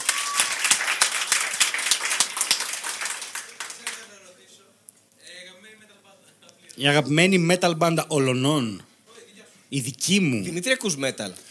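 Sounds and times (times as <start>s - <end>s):
audience applause: 0.0s - 4.2s
speech: 6.8s - 8.9s, 9.7s - 11.4s.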